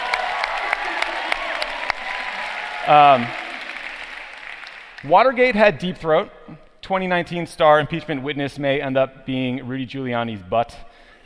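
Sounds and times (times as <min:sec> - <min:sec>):
crowd applause: 0:00.0 - 0:05.1
speech: 0:02.9 - 0:03.4, 0:05.0 - 0:11.2.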